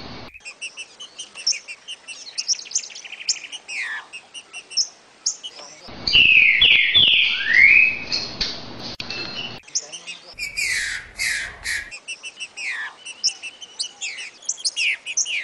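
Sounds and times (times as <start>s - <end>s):
green-winged saltator song: 0.3s - 8.3s, 9.1s - 15.4s.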